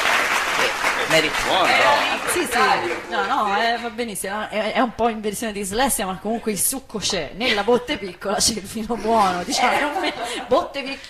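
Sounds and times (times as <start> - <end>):
audience applause: 0.0 - 3.6
speech: 1.2 - 11.0.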